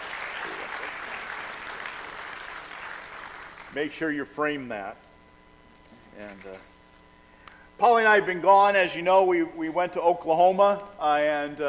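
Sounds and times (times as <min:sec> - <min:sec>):
audience applauding: 0:00.0 - 0:03.8
speech: 0:03.7 - 0:05.1, 0:06.2 - 0:06.8, 0:07.8 - 0:11.6.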